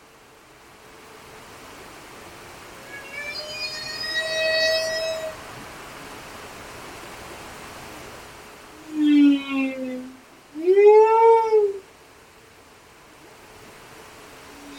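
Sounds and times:
humpback whales singing off Westman Islands: 2.8s - 5.4s, 8.8s - 11.8s, 14.5s - 14.7s.

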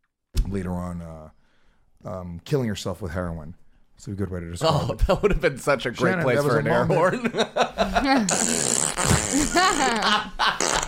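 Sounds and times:
speech: 0.5s - 1.4s, 2.0s - 10.8s
laughter: 6.7s - 10.8s
long loud fart: 8.3s - 10.8s.

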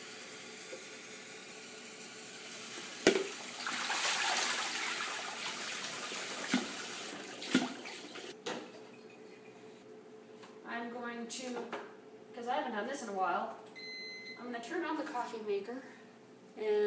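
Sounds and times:
washing with a sponge: 3.5s - 8.4s
speech: 11.2s - 11.8s, 12.4s - 13.6s, 14.4s - 15.9s, 16.6s - 16.8s.

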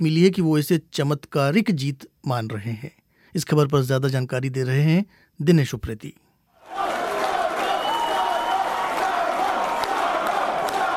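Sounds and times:
speech: 0.0s - 6.8s
supporters chanting in unison: 6.6s - 10.9s
large crowd applauding: 6.7s - 10.9s.

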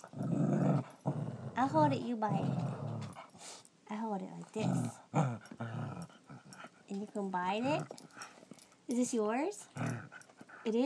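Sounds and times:
dog growling: 0.0s - 3.3s, 4.4s - 8.4s, 9.6s - 10.8s
speech: 1.6s - 2.7s, 3.9s - 6.2s, 6.9s - 8.0s, 8.9s - 9.9s, 10.6s - 10.8s.

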